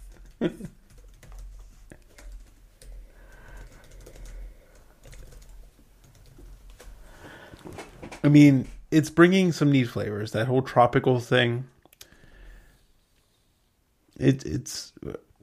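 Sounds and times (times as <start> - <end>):
typing on a computer keyboard: 0.0 - 7.0
speech: 0.4 - 0.8, 8.2 - 11.7, 14.2 - 15.4.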